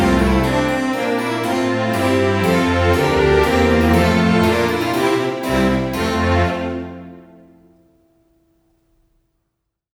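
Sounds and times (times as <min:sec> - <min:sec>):
orchestral music: 0:00.0 - 0:07.7.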